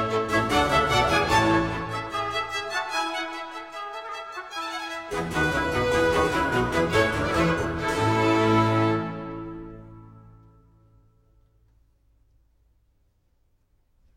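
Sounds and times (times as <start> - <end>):
overture in B flat major: 0.0 - 10.7.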